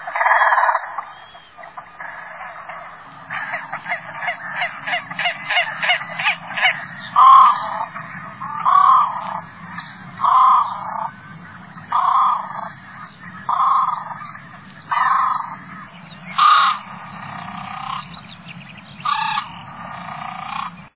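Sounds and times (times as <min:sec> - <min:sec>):
great crested grebe harsh grating calls: 0:00.0 - 0:18.2, 0:19.0 - 0:20.9
low rumbling background: 0:00.0 - 0:20.9.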